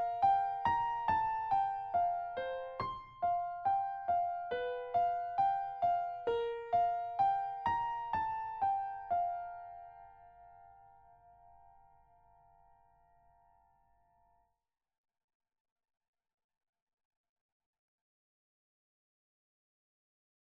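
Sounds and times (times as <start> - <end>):
piano: 0.0 - 14.4.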